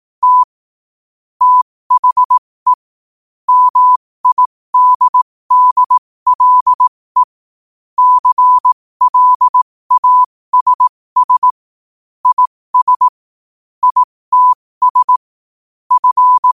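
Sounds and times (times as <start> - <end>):
morse code at 5 wpm: 0.2 - 0.5, 1.4 - 2.8, 3.5 - 7.3, 8.0 - 11.6, 12.2 - 13.2, 13.8 - 15.2, 15.9 - 16.5.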